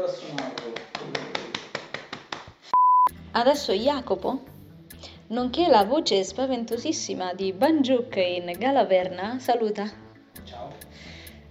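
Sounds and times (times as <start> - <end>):
applause: 0.3 - 2.5
speech: 3.4 - 4.5, 5.3 - 10.0.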